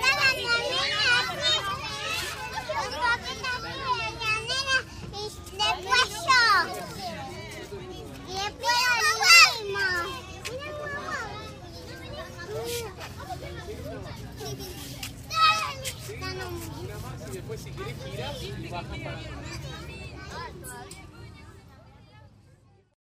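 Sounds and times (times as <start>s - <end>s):
children's playground ambience in a park in Spain: 0.0s - 23.0s.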